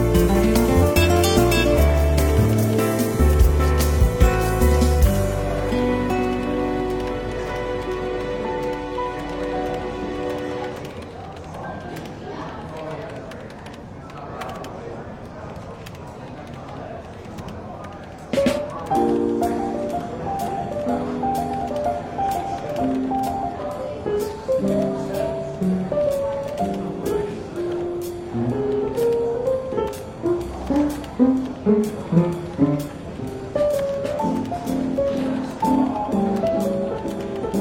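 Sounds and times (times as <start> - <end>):
soft jazz in a London bookshop café: 0.0 - 10.8, 18.3 - 37.5
faint murmur of voices: 0.0 - 37.5.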